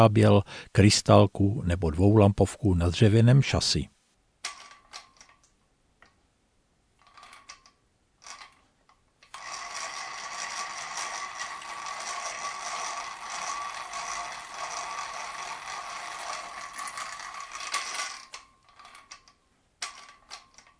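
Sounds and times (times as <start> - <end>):
speech: 0.0 - 3.9
hand-cranked geared tool whirring: 9.3 - 20.7.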